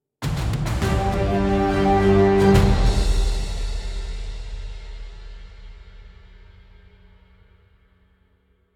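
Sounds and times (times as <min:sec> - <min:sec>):
boss end music: 0:00.2 - 0:03.9.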